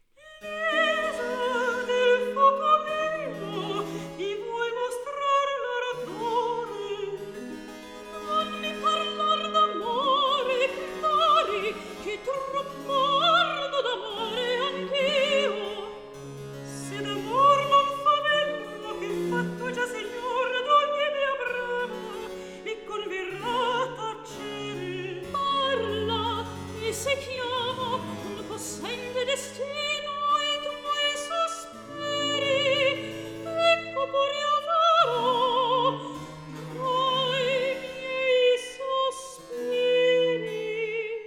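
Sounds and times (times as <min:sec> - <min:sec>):
recitative singing: 0:00.2 - 0:41.2.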